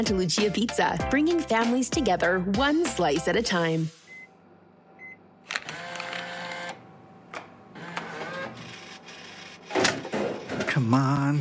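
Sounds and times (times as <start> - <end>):
speech: 0.0 - 4.0, 10.8 - 11.3
vending machine motor whirring: 4.1 - 11.3.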